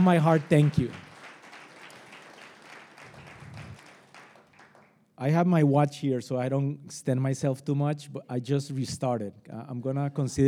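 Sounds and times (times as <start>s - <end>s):
speech: 0.0s - 1.0s, 5.2s - 10.4s
audience clapping: 0.0s - 5.0s.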